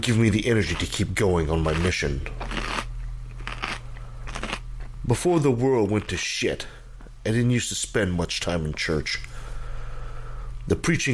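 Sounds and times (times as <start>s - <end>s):
speech: 0.0s - 2.7s, 5.1s - 9.3s, 10.6s - 11.1s
biting and chewing into a meal: 0.6s - 5.0s.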